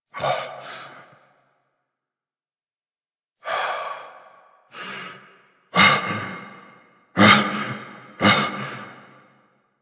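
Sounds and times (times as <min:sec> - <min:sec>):
breathing: 0:00.2 - 0:01.8, 0:03.4 - 0:09.4.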